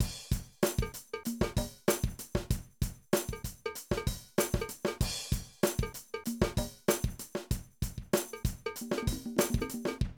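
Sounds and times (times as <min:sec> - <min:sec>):
70s funk drum loops: 0:00.0 - 0:10.1.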